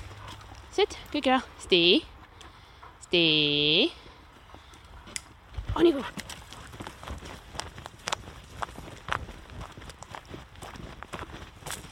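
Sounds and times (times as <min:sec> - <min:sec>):
speech: 0:00.8 - 0:02.1, 0:03.1 - 0:04.0, 0:05.8 - 0:06.2
footsteps crunching on fallen beech nuts: 0:05.0 - 0:11.9.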